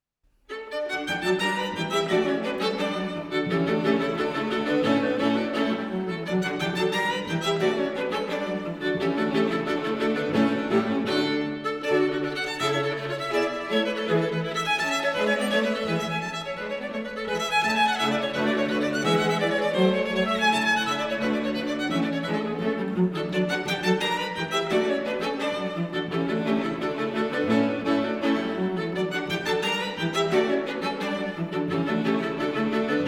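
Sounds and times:
string quartet in D major: 0.5s - 33.0s.

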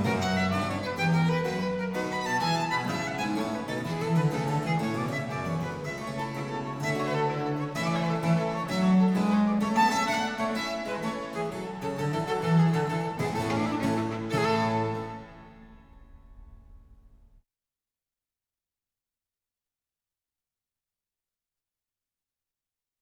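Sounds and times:
violin: 0.0s - 16.6s
continuo: 0.0s - 17.2s.

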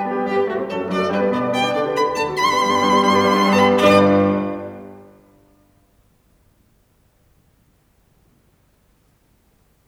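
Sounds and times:
violin and piano sonata scherzo: 0.0s - 5.3s.

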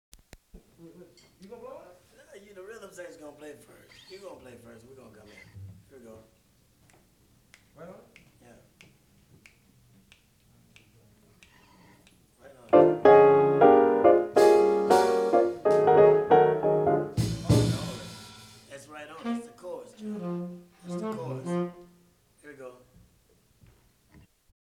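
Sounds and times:
blues music: 12.7s - 22.0s.

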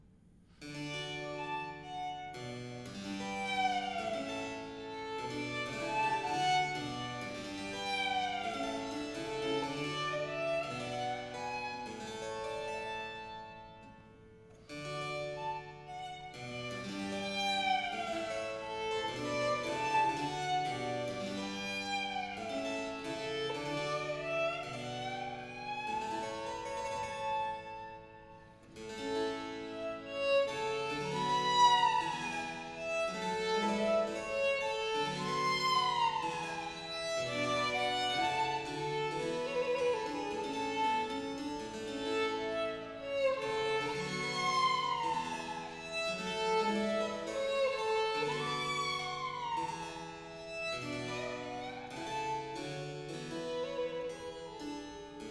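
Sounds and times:
violin sonata with continuo: 0.6s - 55.2s.

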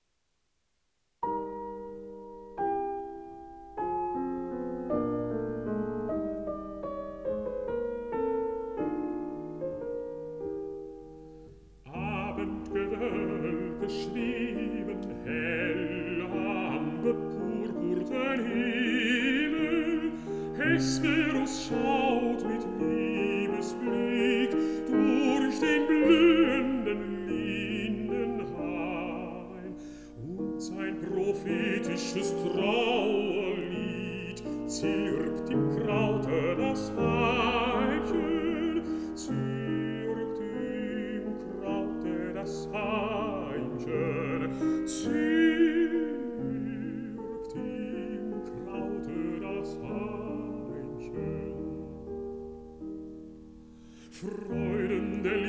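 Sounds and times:
piano: 0.0s - 55.4s
person singing: 11.9s - 52.1s, 54.0s - 55.4s.

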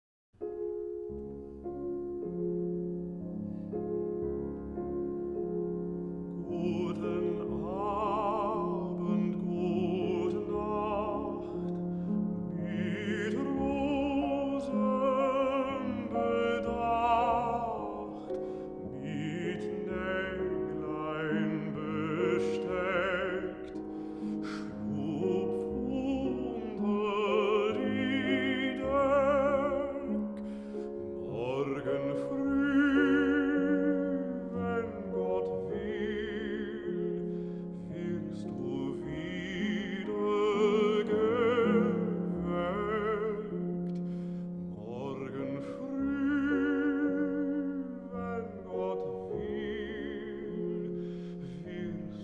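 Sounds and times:
lullaby: 0.4s - 52.2s.

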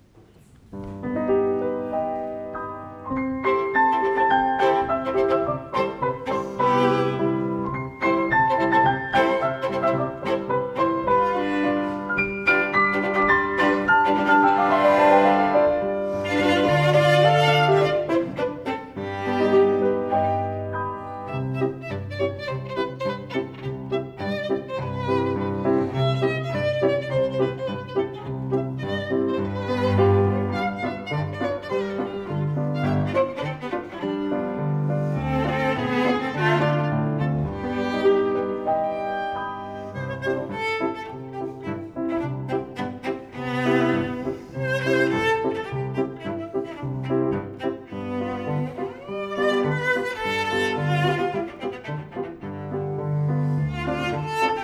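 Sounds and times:
piano trio playing: 0.0s - 54.6s.

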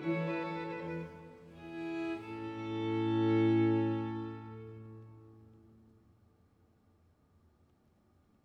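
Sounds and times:
concerto grosso in B flat major: 0.0s - 5.4s.

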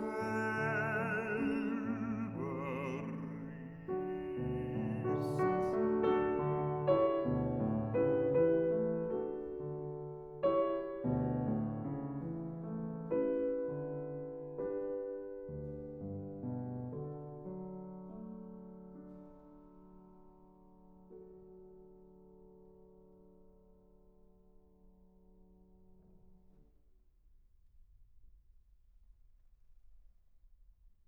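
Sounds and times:
person singing: 0.0s - 6.2s
piano: 0.0s - 27.0s.

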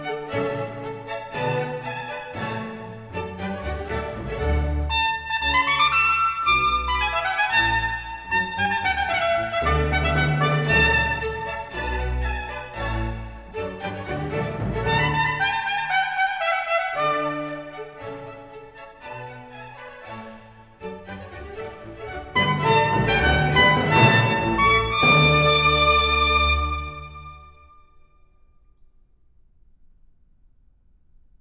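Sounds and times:
strings playing: 0.0s - 27.7s
trumpet playing in a sonata: 4.9s - 12.2s, 14.6s - 17.8s, 22.3s - 27.8s.

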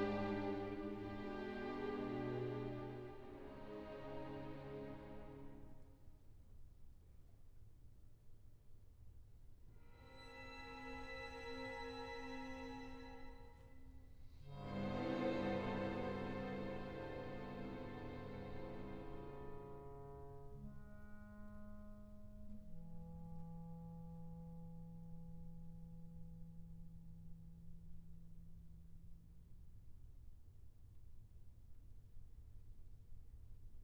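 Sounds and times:
orchestral etude: 0.0s - 5.8s, 9.8s - 26.4s.

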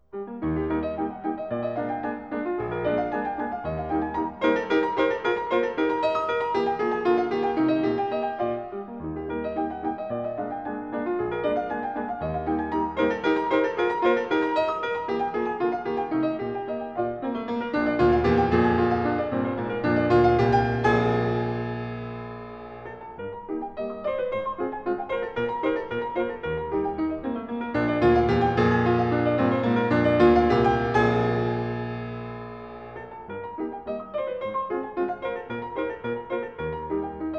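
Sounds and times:
piano variations and fugue: 0.0s - 37.3s.

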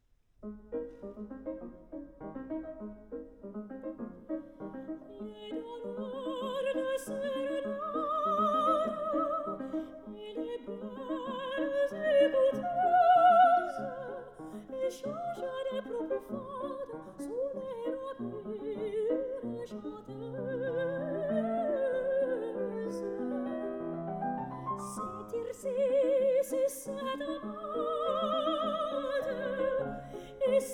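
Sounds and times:
piano: 0.3s - 30.7s
person singing: 5.2s - 23.8s, 24.8s - 30.7s.

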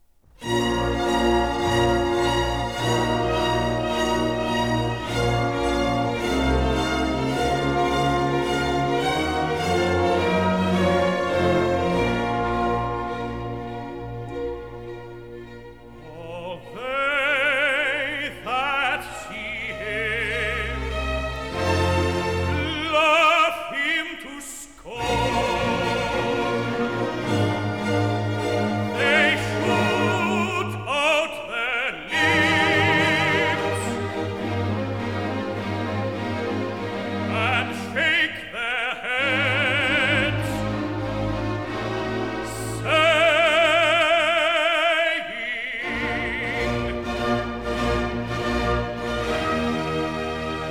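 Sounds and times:
tenor singing recitative: 0.4s - 14.4s, 15.6s - 50.6s.

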